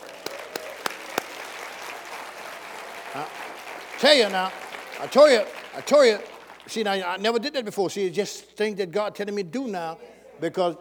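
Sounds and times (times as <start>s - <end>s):
audience applause: 0.0s - 7.1s
speech: 3.1s - 3.4s, 4.0s - 10.7s.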